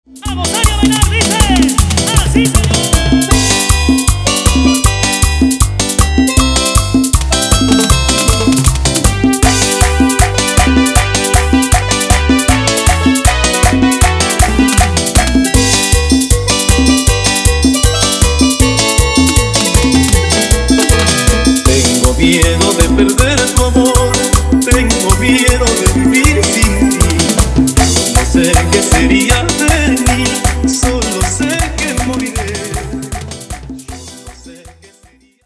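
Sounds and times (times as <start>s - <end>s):
instrumental music: 0.1s - 35.1s.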